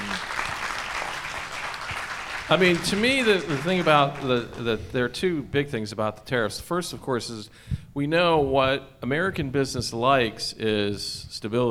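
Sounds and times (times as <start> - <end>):
audience applause: 0.0 - 4.8
speech: 2.5 - 11.6.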